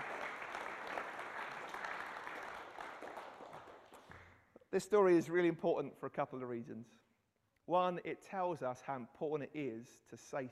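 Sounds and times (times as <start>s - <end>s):
audience applause: 0.0s - 4.2s
speech: 4.7s - 7.1s, 7.7s - 10.5s.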